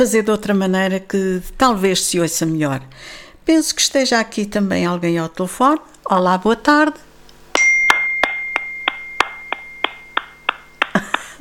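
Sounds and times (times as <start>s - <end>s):
speech: 0.0s - 7.1s
hand clapping: 7.8s - 11.3s.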